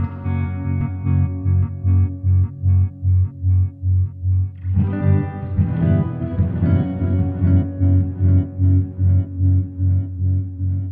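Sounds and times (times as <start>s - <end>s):
rhythm guitars in F sharp: 0.0s - 10.9s.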